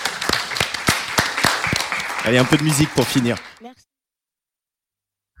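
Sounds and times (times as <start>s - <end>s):
festival audience clapping: 0.0s - 3.8s
speech: 2.2s - 3.9s.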